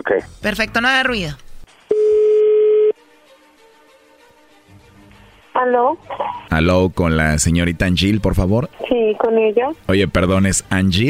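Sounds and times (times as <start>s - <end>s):
speech: 0.0s - 1.4s, 5.6s - 11.0s
ringback tone from an outgoing phone call: 1.9s - 3.0s.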